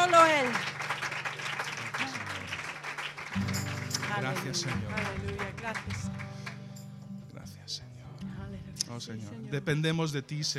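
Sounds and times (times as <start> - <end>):
congregation applauding during a church worship service: 0.0 - 6.8
speech: 4.2 - 6.3, 8.9 - 10.5.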